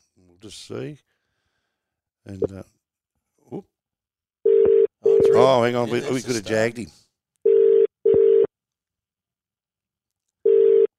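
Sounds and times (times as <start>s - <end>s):
speech: 0.4s - 1.1s, 2.2s - 2.8s, 3.5s - 3.7s, 5.3s - 7.0s
ringback tone on an outgoing phone call: 4.5s - 5.4s, 7.5s - 8.5s, 10.5s - 10.9s.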